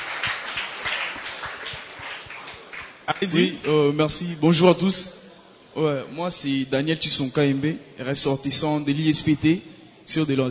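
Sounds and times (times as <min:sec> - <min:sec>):
audience applause: 0:00.0 - 0:03.7
speech: 0:03.1 - 0:05.2, 0:05.8 - 0:10.4.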